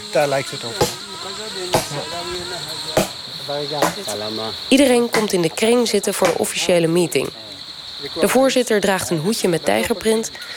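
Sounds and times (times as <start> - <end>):
speech: 0.1 - 7.4, 8.0 - 10.5
large knife hacking into a piece of wood: 1.7 - 2.0, 3.0 - 3.2, 3.8 - 4.1.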